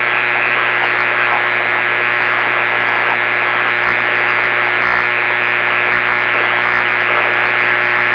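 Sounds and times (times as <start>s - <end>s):
6m noise: 0.0s - 8.1s.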